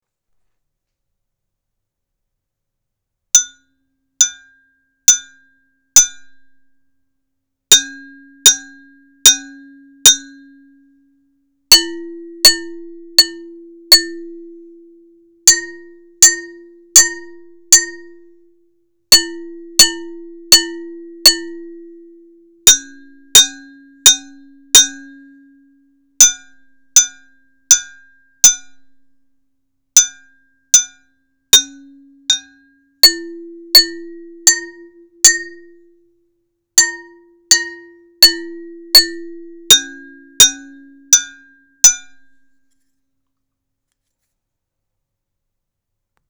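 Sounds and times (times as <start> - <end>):
vidriofono glass instrument: 3.4 - 6.4, 7.7 - 10.9, 11.7 - 18.5, 19.1 - 28.9, 30.0 - 36.0, 36.8 - 42.5.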